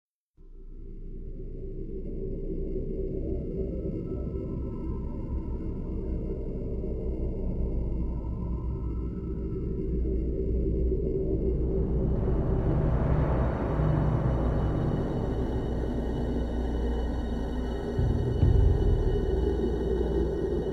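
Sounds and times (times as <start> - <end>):
music in a cave: 0.4 - 20.7.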